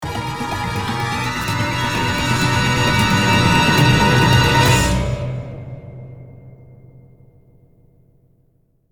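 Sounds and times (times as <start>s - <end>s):
death music stinger: 0.0s - 6.7s.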